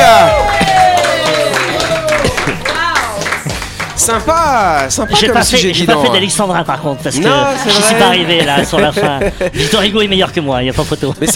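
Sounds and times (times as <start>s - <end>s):
laughter: 0.0s - 2.8s, 7.3s - 10.1s, 10.8s - 11.3s
audience applauding: 0.0s - 5.4s
speech: 4.0s - 11.3s.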